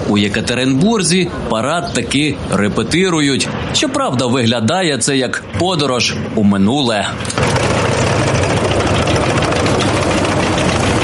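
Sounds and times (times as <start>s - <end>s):
heavy tank engines idling: 0.0s - 11.0s
speech: 0.1s - 8.4s.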